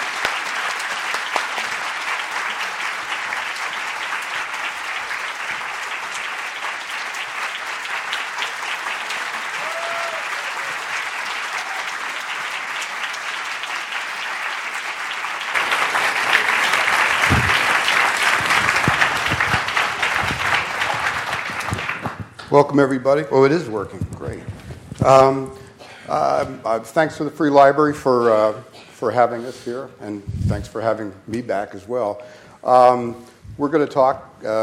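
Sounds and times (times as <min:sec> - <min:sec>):
audience applause welcoming speakers at the Free Library: 0:00.0 - 0:22.8
speech: 0:22.6 - 0:34.6.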